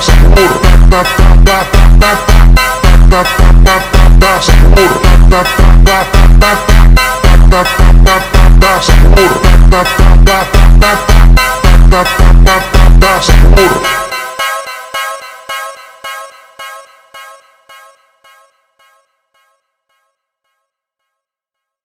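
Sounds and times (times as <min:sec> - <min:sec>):
super slowed funk music: 0:00.0 - 0:15.2.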